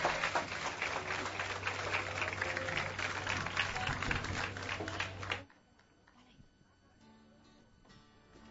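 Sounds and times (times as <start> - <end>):
crowd applause: 0.0 - 5.5.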